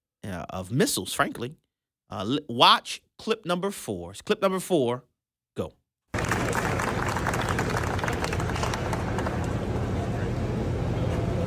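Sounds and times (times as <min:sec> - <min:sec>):
speech: 0:00.3 - 0:05.8
people clapping: 0:06.1 - 0:10.4
crowd murmur: 0:06.2 - 0:11.4.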